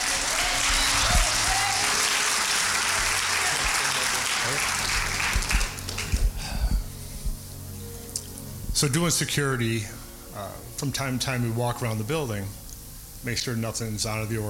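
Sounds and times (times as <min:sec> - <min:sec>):
audience clapping hands: 0:00.0 - 0:06.6
speech: 0:08.8 - 0:12.6, 0:13.2 - 0:14.4.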